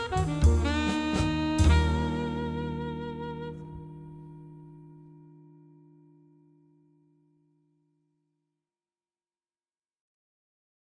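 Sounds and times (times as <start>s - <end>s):
jazz music: 0.0s - 5.1s.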